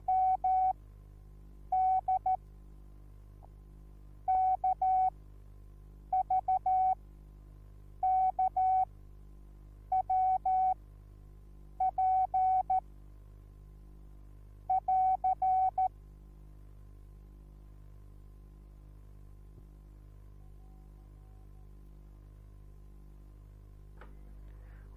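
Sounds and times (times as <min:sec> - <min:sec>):
morse code beeps: 0:00.0 - 0:00.8, 0:01.8 - 0:02.4, 0:04.3 - 0:05.1, 0:06.2 - 0:07.0, 0:08.0 - 0:08.9, 0:09.9 - 0:10.8, 0:11.8 - 0:12.8, 0:14.7 - 0:15.9.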